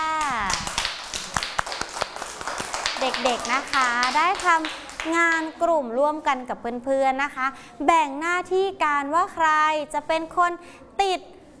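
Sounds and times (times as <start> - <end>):
children clapping in a classroom: 0.0 - 5.5
speech: 3.0 - 11.4.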